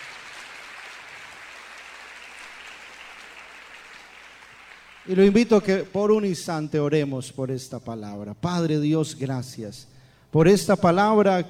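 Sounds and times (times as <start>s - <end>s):
audience applause: 0.0s - 5.6s
speech: 5.0s - 11.4s.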